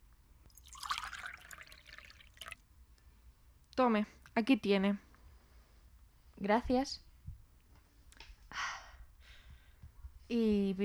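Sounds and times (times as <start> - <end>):
bottled water pouring into a glass: 0.5 - 2.6
speech: 3.8 - 5.1, 6.4 - 7.0, 10.3 - 10.8.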